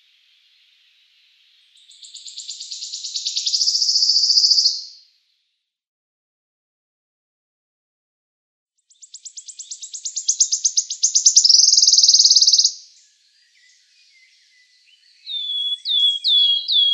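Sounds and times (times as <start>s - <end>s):
wood warbler singing: 1.7s - 5.0s, 8.9s - 16.9s.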